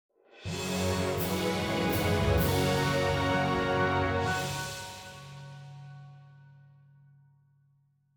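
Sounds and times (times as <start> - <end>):
in-game fanfare music: 0.5 - 6.0.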